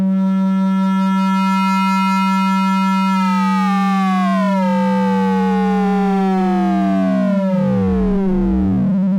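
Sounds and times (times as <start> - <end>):
slow LFO synthesizer modulation: 0.1 - 9.1.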